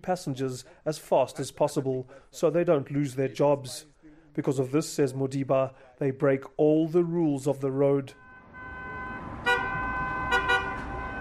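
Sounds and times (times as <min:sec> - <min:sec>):
speech: 0:00.0 - 0:08.2
minibus taxi horn hooting to attract passengers: 0:08.1 - 0:11.1
minibus taxi engine droning: 0:08.2 - 0:11.1.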